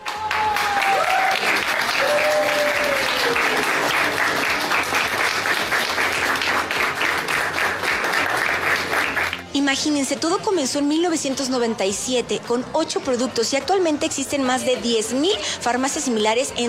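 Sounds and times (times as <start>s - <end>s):
prolonged applause: 0.0s - 9.5s
speech: 9.7s - 16.6s.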